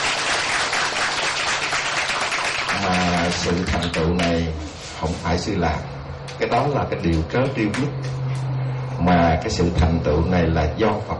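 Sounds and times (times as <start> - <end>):
applause from a Buddhist audience at a temple: 0.0 - 4.4
speech: 2.8 - 8.2, 9.0 - 11.1.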